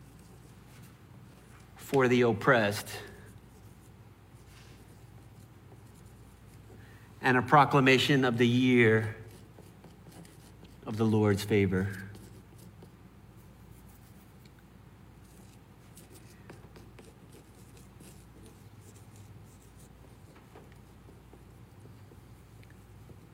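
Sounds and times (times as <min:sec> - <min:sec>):
steady low hum: 0:00.0 - 0:23.3
speech: 0:01.9 - 0:03.1, 0:07.3 - 0:09.2, 0:10.9 - 0:12.1
pen or marker writing strokes: 0:03.3 - 0:07.0, 0:08.9 - 0:14.5, 0:15.2 - 0:23.3.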